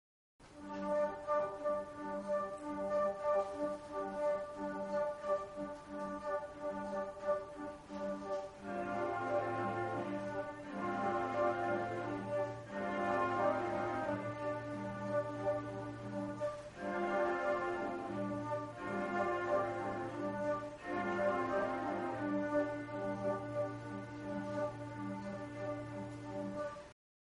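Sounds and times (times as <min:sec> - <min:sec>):
flute in concert: 0:00.4 - 0:27.0.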